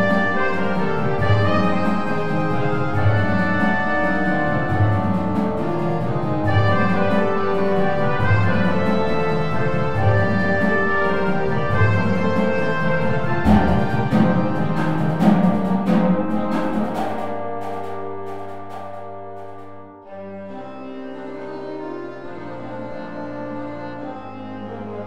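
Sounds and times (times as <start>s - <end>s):
drums: 0.0s - 19.8s.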